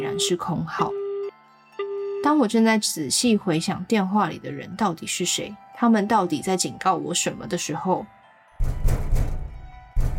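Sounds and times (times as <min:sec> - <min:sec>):
speech: 0:00.1 - 0:01.0, 0:02.2 - 0:09.0
heavy dull knocking on a door: 0:08.6 - 0:10.1.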